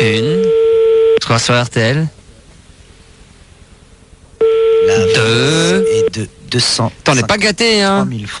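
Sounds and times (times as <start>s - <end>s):
telephone ringing: 0.0s - 1.2s, 4.4s - 6.2s
speech: 1.3s - 2.2s, 6.2s - 8.3s.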